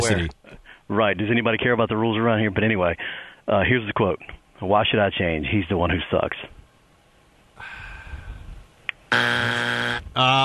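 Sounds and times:
speech: 0:00.1 - 0:06.6, 0:09.1 - 0:10.4
studio buzzer: 0:09.1 - 0:10.2.

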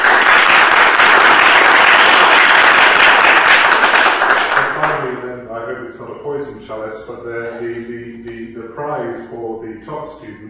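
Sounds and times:
audience applause: 0:00.0 - 0:05.0
speech: 0:06.4 - 0:10.4.

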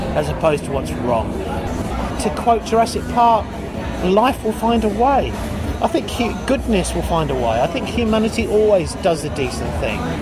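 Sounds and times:
loud nightclub crowd chatter: 0:00.0 - 0:10.2
speech: 0:00.2 - 0:01.6, 0:02.2 - 0:10.2.

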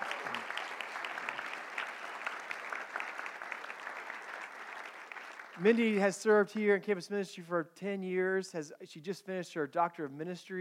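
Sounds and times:
audience applause: 0:00.0 - 0:06.0
speech: 0:05.6 - 0:10.5.

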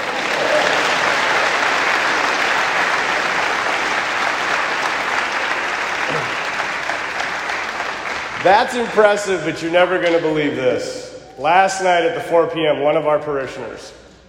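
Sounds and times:
audience clapping: 0:00.0 - 0:10.6
speech: 0:08.4 - 0:14.0.

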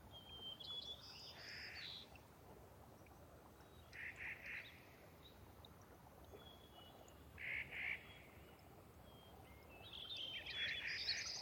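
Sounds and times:
streams trickling through a wet subalpine meadow: 0:00.0 - 0:11.4.

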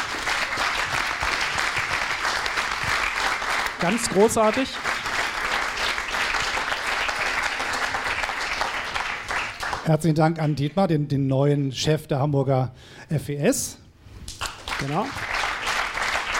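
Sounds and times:
audience applause: 0:00.0 - 0:09.9, 0:14.4 - 0:16.3
speech: 0:03.8 - 0:05.0, 0:09.9 - 0:13.8, 0:14.8 - 0:15.3.

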